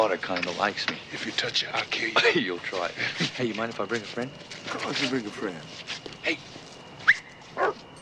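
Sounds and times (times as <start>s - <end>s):
speech: 0.0s - 6.6s
dog barking and whimpering: 7.1s - 7.8s.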